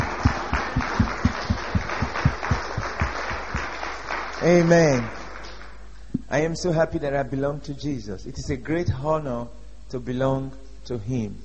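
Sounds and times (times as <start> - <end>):
scattered applause: 0.0 - 5.9
crowd clapping in a steady rhythmic beat: 0.0 - 6.3
speech: 4.4 - 5.2, 6.3 - 11.4.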